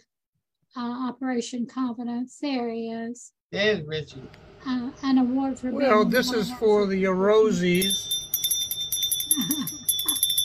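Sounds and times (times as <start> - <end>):
speech: 0.7 - 8.2
bell ringing: 7.5 - 10.4.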